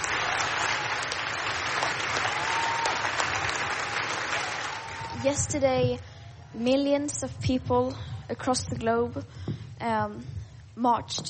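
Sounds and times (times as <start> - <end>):
young people applauding in the hall of the UN Youth Climate Summit: 0.0 - 5.4
speech: 5.2 - 11.2.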